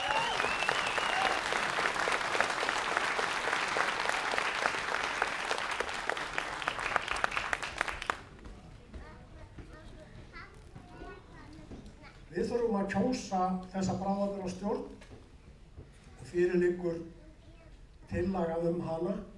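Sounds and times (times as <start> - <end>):
meeting attendees applauding a unanimous vote: 0.0 - 8.6
speech: 12.4 - 15.0, 16.3 - 17.2, 18.1 - 19.3.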